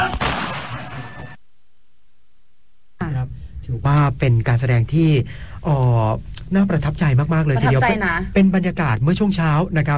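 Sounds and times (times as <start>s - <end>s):
gunshot at a military camp in Ratchaburi during a rifle-drill display: 0.1s - 1.1s
speech: 3.7s - 9.9s.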